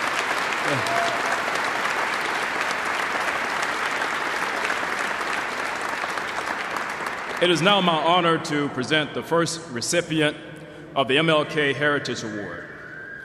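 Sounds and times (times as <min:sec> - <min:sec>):
applause from a large crowd: 0:00.0 - 0:07.9
speech: 0:00.7 - 0:01.3, 0:07.4 - 0:12.6
faint tonal whistle: 0:12.5 - 0:13.2.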